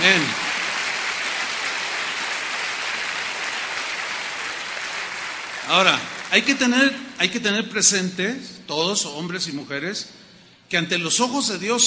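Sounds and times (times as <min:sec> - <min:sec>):
speech: 0:00.0 - 0:00.4, 0:05.7 - 0:11.8
audience applause: 0:00.0 - 0:06.7.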